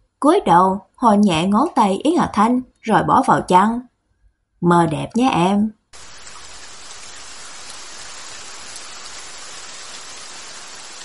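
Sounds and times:
speech: 0.2 - 3.9, 4.6 - 5.8
heavy rain downpour: 6.0 - 11.0.

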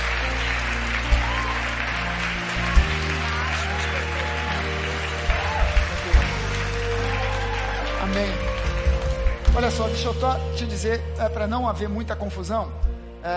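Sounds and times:
audience applause at a church ministerial ordination service: 0.0 - 10.2
speech: 9.7 - 13.3.

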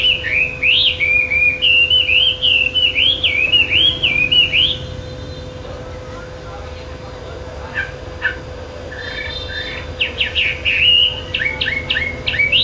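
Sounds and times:
bird song of looping whistled phrases and fast chirps: 0.0 - 5.5, 8.2 - 12.6.

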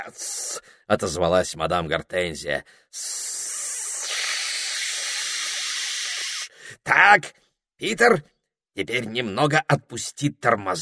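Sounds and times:
speech: 0.0 - 3.3, 6.8 - 10.8
steam hissing from a locomotive: 3.0 - 6.5.

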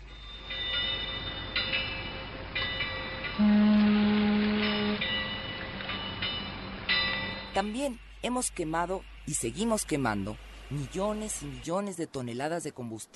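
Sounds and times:
train rumbling past: 0.0 - 11.7
loud sustained low horn-like tone: 3.4 - 5.2
speech: 7.6 - 13.1.

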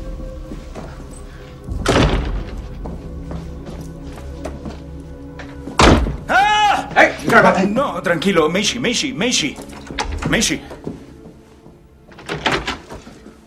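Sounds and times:
heavy outer and inner hotel suite doors thudding shut: 1.7 - 2.8, 5.8 - 6.3, 12.1 - 13.0
speech: 7.4 - 9.7, 10.3 - 10.7.

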